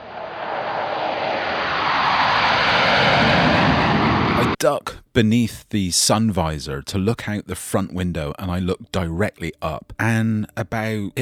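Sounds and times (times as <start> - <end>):
aircraft flying low overhead: 0.0 - 4.6
speech: 4.6 - 11.2.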